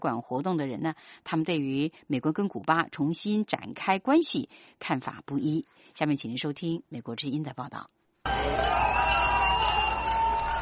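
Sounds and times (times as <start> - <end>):
speech: 0.0 - 9.0
crowd cheering and chanting slogans at Cuban flag raising outside embassy in Washington: 8.3 - 10.6.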